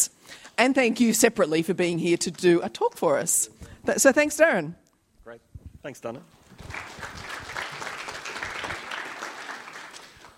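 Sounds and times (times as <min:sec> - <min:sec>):
speech: 0:00.6 - 0:06.8
crowd applause: 0:06.5 - 0:10.3.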